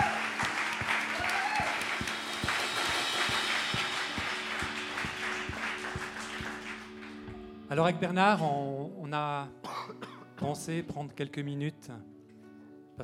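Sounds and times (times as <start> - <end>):
church congregation applauding the worship team: 0.0 - 7.5
regular thumping beat: 0.0 - 7.6
sustained keyboard chords: 0.0 - 13.0
speech: 7.7 - 12.1.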